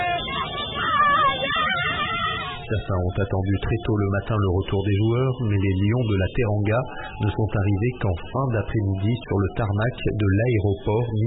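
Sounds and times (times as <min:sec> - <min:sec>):
high drawn-out cry: 0:00.0 - 0:03.4
crowd shouting and cheering for joy: 0:00.0 - 0:11.2
speech: 0:02.7 - 0:11.2.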